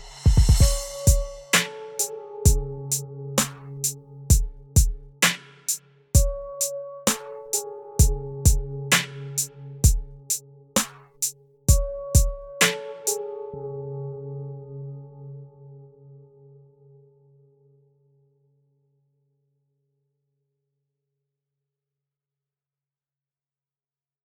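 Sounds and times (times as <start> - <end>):
melodic beat: 0.3 - 13.2.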